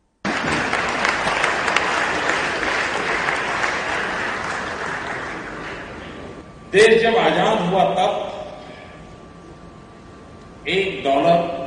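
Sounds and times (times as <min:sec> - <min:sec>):
audience clapping: 0:00.2 - 0:06.3
speech: 0:06.7 - 0:08.2, 0:10.7 - 0:11.6.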